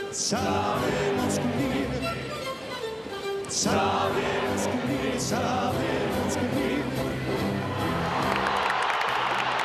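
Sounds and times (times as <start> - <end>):
speech: 0.2 - 2.3, 3.5 - 8.2
crowd cheering and applause after the national anthem: 7.3 - 9.6.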